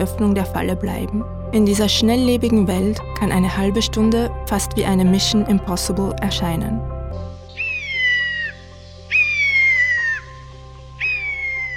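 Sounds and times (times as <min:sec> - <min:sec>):
speech: 0:00.0 - 0:07.3
northern lapwing call: 0:07.5 - 0:10.4, 0:11.0 - 0:11.7.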